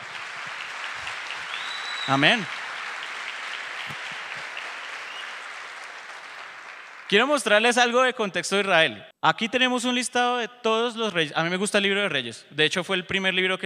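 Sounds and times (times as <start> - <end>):
audience applause: 0.0 - 7.5
speech: 2.1 - 2.6, 7.1 - 13.6.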